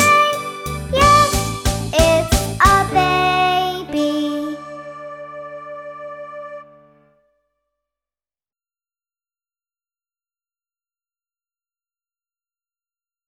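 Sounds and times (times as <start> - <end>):
vocals: 0.0 - 4.7.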